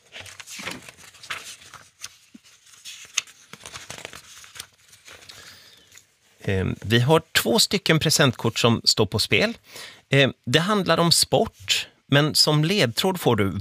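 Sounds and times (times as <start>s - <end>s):
pages of a binder flipping and rustling: 0.0s - 6.2s
speech: 6.5s - 13.6s.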